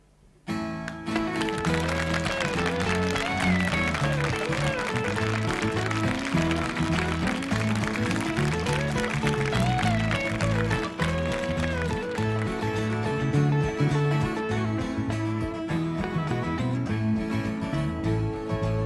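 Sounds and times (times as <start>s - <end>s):
crowd clapping: 0.9s - 14.4s
song playing: 1.0s - 18.8s.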